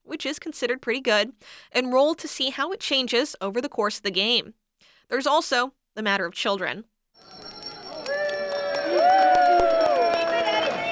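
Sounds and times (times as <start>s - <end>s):
speech: 0.2s - 7.4s
bell ringing: 7.2s - 10.9s.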